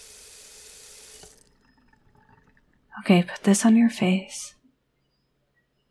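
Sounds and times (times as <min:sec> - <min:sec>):
tap water running to wet a washcloth: 0:00.0 - 0:02.9
speech: 0:03.0 - 0:04.6.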